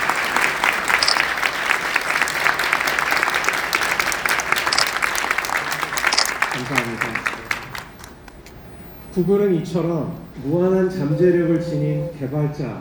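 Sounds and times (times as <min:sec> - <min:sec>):
audience applause: 0:00.0 - 0:08.4
speech: 0:06.7 - 0:07.3, 0:09.2 - 0:12.7.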